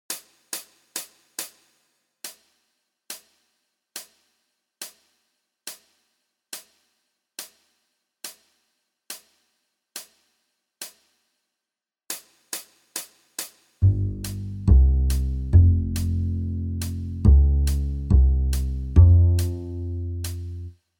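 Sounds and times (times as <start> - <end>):
jazz backing music: 13.8 - 20.7.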